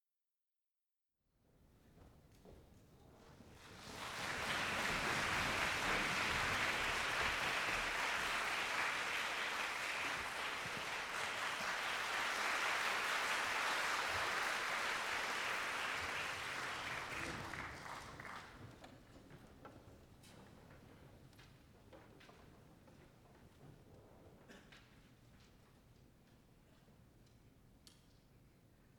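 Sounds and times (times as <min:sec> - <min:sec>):
applause: 0:03.6 - 0:18.9.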